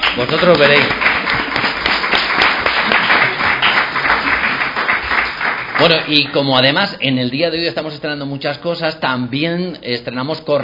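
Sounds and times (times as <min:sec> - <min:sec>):
audience applause: 0:00.0 - 0:06.5
speech: 0:00.2 - 0:01.0, 0:05.8 - 0:10.6.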